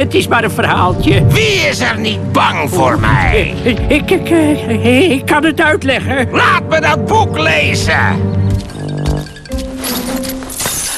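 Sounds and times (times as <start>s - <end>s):
speech: 0.0s - 8.4s
jingling of gold treasure: 8.4s - 10.9s.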